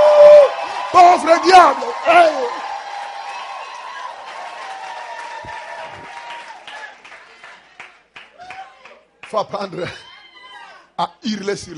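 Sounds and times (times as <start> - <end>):
cheering voices: 0.0 - 9.0
church audience applause: 0.0 - 9.4
speech: 1.0 - 2.6, 9.3 - 10.1, 11.0 - 11.7.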